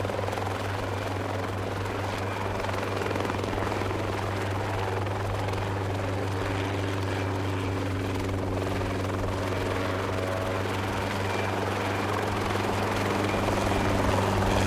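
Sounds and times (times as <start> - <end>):
1982 Robinson R22 helicopter taking off: 0.0 - 14.6.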